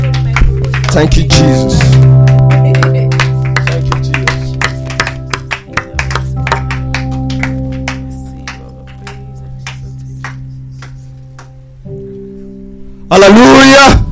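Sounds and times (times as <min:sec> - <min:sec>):
audience clapping: 0:00.0 - 0:11.8
speech: 0:01.0 - 0:02.0, 0:13.1 - 0:14.0.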